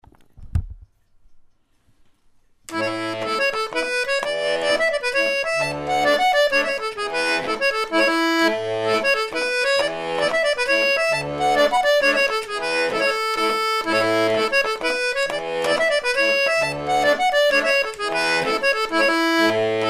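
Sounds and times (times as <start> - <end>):
polska dance tune from Dala-Floda: 2.7 - 19.8.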